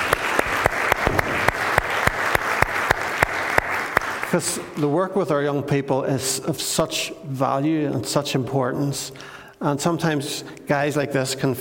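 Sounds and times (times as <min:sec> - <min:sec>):
audience round of applause: 0:00.0 - 0:04.8
speech: 0:04.3 - 0:11.6.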